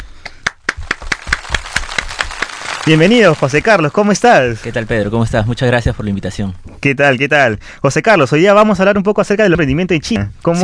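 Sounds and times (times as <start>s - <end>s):
audience applause: 0.4s - 3.9s
speech: 2.9s - 10.6s.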